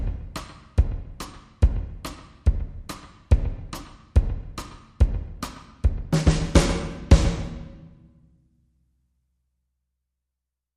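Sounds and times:
drums: 0.0 - 8.2.

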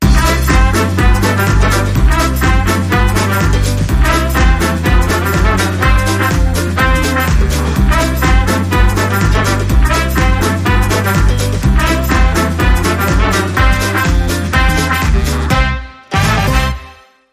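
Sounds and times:
electro swing jingle: 0.0 - 17.1.

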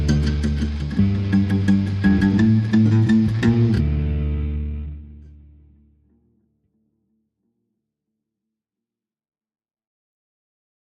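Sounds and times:
bass: 0.0 - 6.7
guitars: 0.0 - 7.7.

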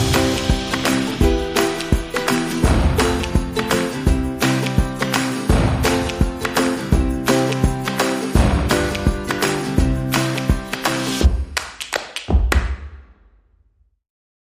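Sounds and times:
guitars: 0.0 - 11.2
drums: 0.0 - 11.6
ukulele rhythm: 0.0 - 12.9.

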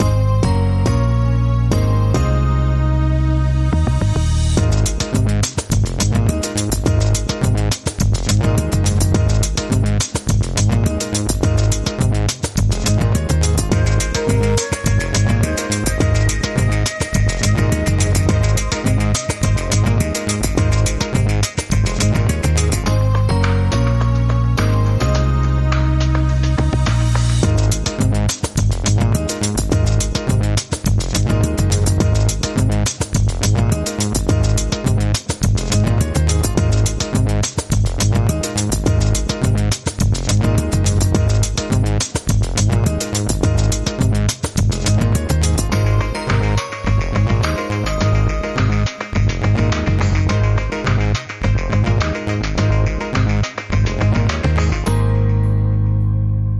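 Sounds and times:
promo music: 0.0 - 56.5.

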